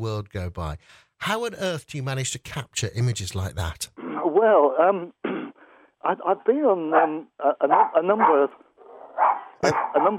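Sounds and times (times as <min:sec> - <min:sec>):
speech: 0:00.0 - 0:05.2, 0:06.0 - 0:08.6, 0:09.2 - 0:10.1
dog barking and yipping: 0:06.9 - 0:10.1.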